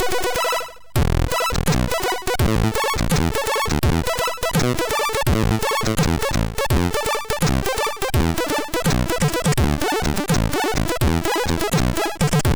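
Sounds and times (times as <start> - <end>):
arcade chiptune sounds on a MOS 6581R2 SID chip: 0.0 - 12.4.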